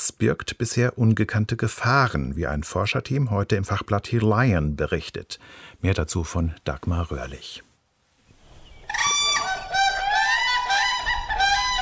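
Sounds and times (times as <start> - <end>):
speech: 0.1 - 7.7
whooping cranes calling: 8.9 - 11.8.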